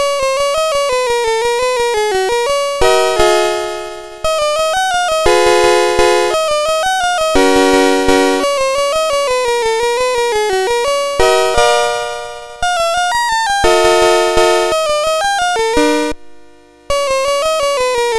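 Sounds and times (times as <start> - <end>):
waltz on SID MOS6581R2 sound chip: 0.0 - 18.1.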